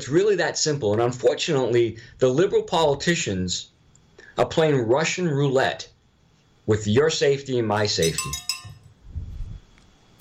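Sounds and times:
speech: 0:00.0 - 0:03.7, 0:04.4 - 0:05.9, 0:06.7 - 0:08.4
bell rung as a joke cue: 0:08.0 - 0:08.9.

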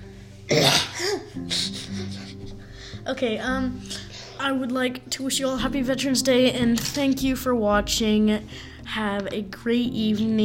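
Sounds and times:
coughing in the background: 0:00.5 - 0:02.5
speech: 0:03.1 - 0:10.4.

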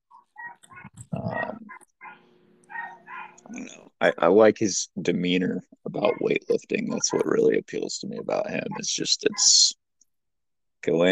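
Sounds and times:
dog barking excitedly upstairs: 0:00.4 - 0:03.7, 0:06.0 - 0:07.4, 0:08.5 - 0:09.6
speech: 0:03.5 - 0:09.8, 0:10.8 - 0:11.1.

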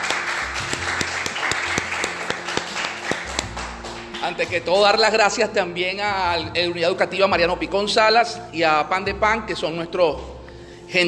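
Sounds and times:
crowd applause: 0:00.0 - 0:04.3
speech: 0:04.3 - 0:10.3.

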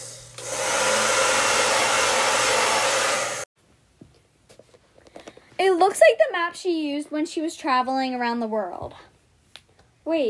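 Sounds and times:
hair dryer drying a wet map: 0:00.0 - 0:03.5
speech: 0:05.8 - 0:09.1, 0:10.1 - 0:10.2.

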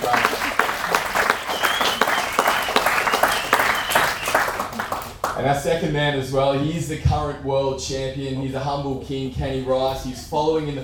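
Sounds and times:
audience applause: 0:00.0 - 0:05.4
speech: 0:05.4 - 0:10.8.

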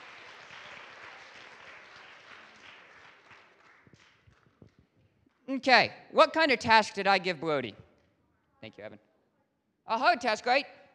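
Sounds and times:
audience applause: 0:00.0 - 0:04.5
speech: 0:05.5 - 0:07.8, 0:08.6 - 0:09.1, 0:09.9 - 0:10.8.

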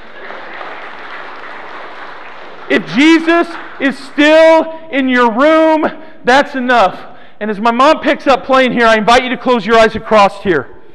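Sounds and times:
crowd applause: 0:00.0 - 0:04.7
speech: 0:02.7 - 0:10.8.

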